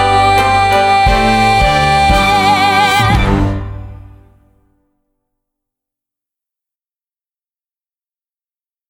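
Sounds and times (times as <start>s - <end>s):
guided vocals: 0.0s - 4.0s.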